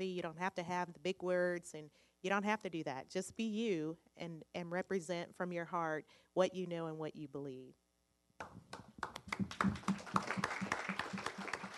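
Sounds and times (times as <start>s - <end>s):
speech: 0.0s - 7.8s
audience applause for a panel: 9.0s - 11.7s.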